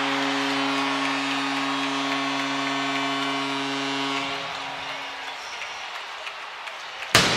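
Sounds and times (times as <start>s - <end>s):
droning horn-like tone: 0.0s - 5.6s
hockey arena crowd roaring: 0.0s - 7.3s
goal cannon blast in hockey arena: 7.2s - 7.3s.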